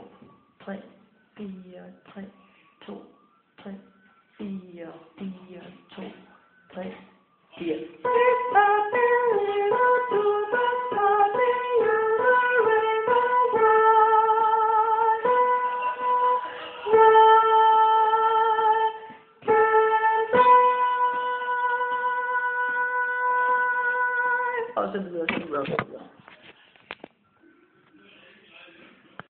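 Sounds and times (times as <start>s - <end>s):
soprano singing: 1.4s - 24.8s.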